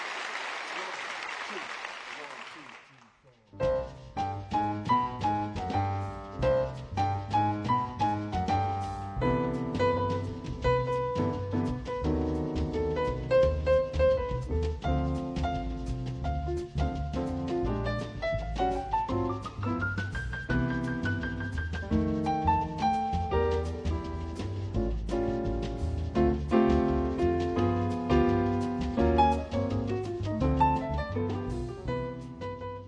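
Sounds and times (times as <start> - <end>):
applause: 0.0 - 3.3
piano playing quick notes and chords over low bass tones: 3.6 - 32.8.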